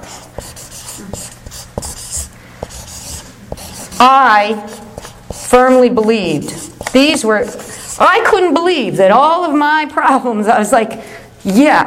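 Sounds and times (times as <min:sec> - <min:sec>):
pen writing: 0:00.0 - 0:08.1
speech: 0:04.0 - 0:04.8, 0:05.5 - 0:11.8.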